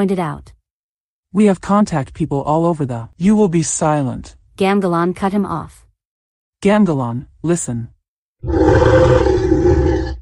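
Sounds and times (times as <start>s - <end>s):
speech: 0.0s - 0.6s, 1.3s - 5.8s, 6.6s - 9.3s
deep rumbling animal growl: 8.4s - 10.1s.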